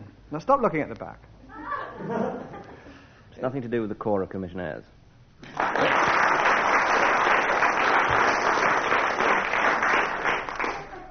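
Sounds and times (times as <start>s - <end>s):
speech: 0.3s - 1.3s, 2.0s - 2.5s, 3.4s - 6.0s
laughter: 1.5s - 2.9s, 10.6s - 11.1s
audience clapping: 5.4s - 11.1s.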